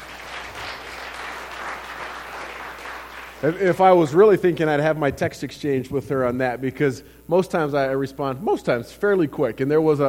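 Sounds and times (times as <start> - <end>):
audience clapping: 0.0 - 3.8
speech: 3.4 - 10.0.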